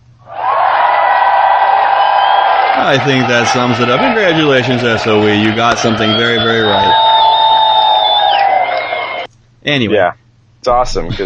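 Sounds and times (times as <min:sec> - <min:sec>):
cheering crowd sound effect: 0:00.3 - 0:09.3
speech: 0:02.8 - 0:07.0, 0:09.6 - 0:11.2.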